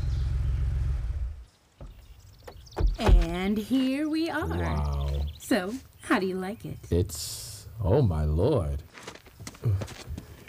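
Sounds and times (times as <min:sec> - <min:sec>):
loud low car engine rumble: 0:00.0 - 0:03.5
short knocks: 0:01.8 - 0:03.6
speech: 0:03.0 - 0:08.9, 0:09.6 - 0:10.1.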